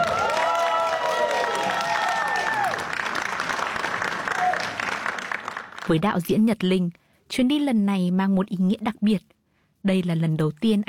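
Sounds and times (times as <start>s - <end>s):
audience applause: 0.0s - 6.0s
speech: 5.9s - 10.8s.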